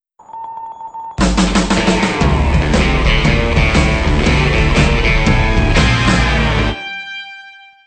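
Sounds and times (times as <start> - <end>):
mission success jingle: 1.2 - 7.0.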